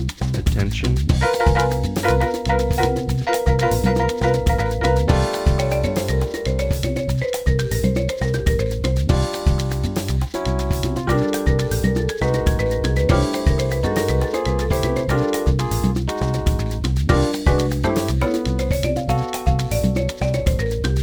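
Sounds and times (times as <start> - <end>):
marimba jam: 1.1 - 21.0.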